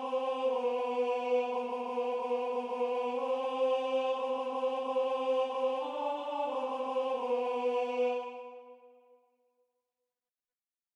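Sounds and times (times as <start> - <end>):
tenor singing: 0.0 - 8.8.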